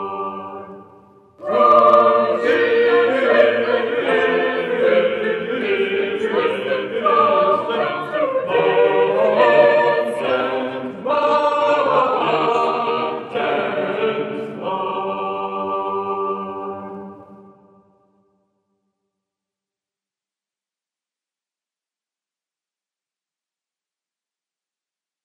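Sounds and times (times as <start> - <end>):
a cappella choral singing: 0.0 - 17.9.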